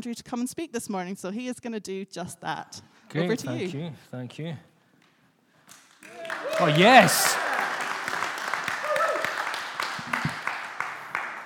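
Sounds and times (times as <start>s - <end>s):
speech: 0.0s - 4.7s, 6.1s - 7.5s
audience applause: 5.9s - 11.4s.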